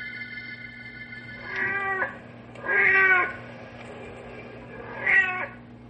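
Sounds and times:
tomcat Blackie meowing and caterwauling on the prowl: 1.4 - 3.4, 4.9 - 5.6.

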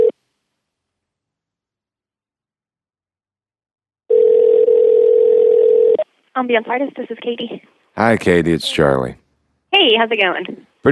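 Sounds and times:
telephone line tone as a call is placed to an office: 4.1 - 6.0
speech: 6.4 - 10.9.

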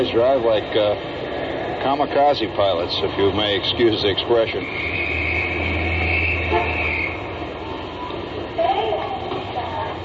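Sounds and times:
speech: 0.0 - 1.2, 1.8 - 5.2
Japanese street traffic roar in the Ginza: 0.0 - 10.0
loud sustained horn-like blare: 4.6 - 7.4.

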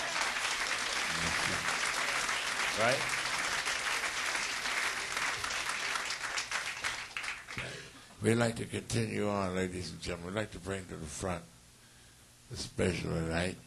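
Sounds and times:
audience applause for a musician: 0.0 - 7.8
speech: 2.8 - 3.2, 8.2 - 11.6, 12.5 - 13.6.

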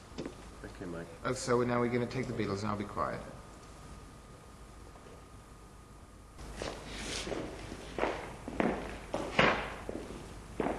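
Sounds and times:
speech: 0.9 - 3.4
footsteps of an actor walking during a film take: 6.4 - 10.7.

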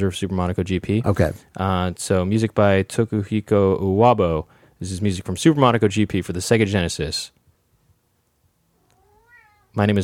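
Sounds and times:
speech: 0.0 - 7.4, 9.8 - 10.0
cat meowing: 8.8 - 9.8.

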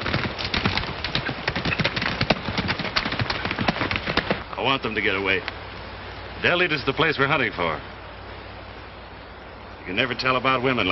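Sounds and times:
horses riding off with hooves clip-clopping: 0.0 - 4.6
speech: 4.6 - 5.6, 6.4 - 7.9, 9.8 - 10.8.

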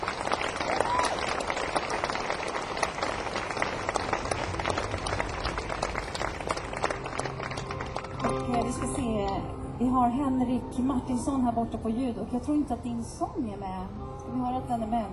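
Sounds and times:
audience applause: 0.0 - 9.0
speech: 10.0 - 15.1.

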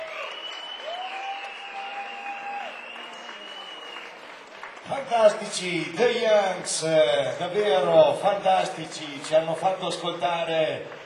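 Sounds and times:
sustained high whistling tone: 0.0 - 4.1
audience applause: 0.0 - 11.0
speech: 4.9 - 11.0.

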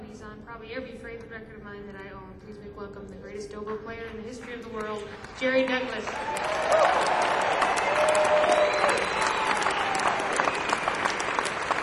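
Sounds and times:
speech: 0.2 - 8.6
audience applause: 5.9 - 11.8.

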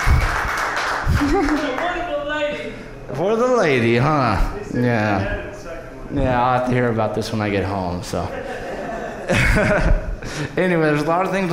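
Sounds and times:
laughter: 0.0 - 2.0, 8.1 - 10.7
audience clapping: 0.0 - 2.1
speech: 1.2 - 1.7, 3.1 - 5.4, 6.1 - 8.6, 9.3 - 11.5.

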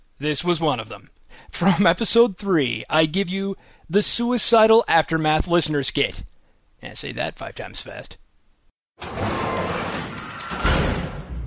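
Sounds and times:
speech: 0.2 - 8.2
heavy metal bunker door being forced open: 9.0 - 11.4.

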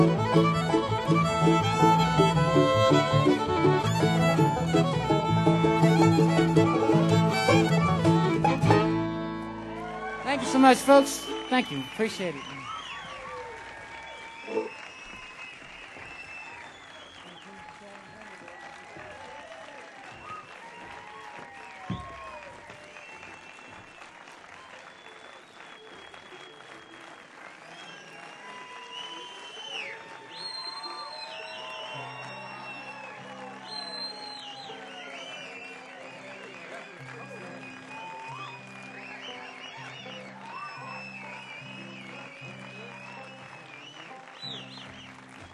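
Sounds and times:
audience applause: 0.0 - 45.5
speech: 0.4 - 0.6, 10.6 - 12.6.

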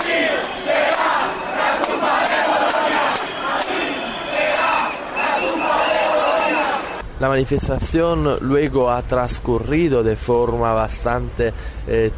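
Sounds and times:
protesters shouting slogans inside a station: 0.0 - 7.0
speech: 7.2 - 12.1.

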